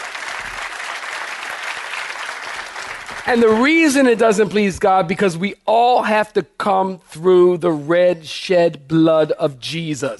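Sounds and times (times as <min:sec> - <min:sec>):
audience clapping hands: 0:00.0 - 0:04.2
speech: 0:03.2 - 0:10.1.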